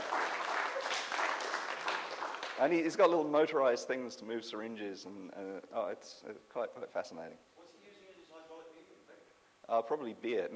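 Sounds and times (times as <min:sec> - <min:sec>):
clapping: 0:00.0 - 0:02.8
speech: 0:02.6 - 0:07.5, 0:09.7 - 0:10.5.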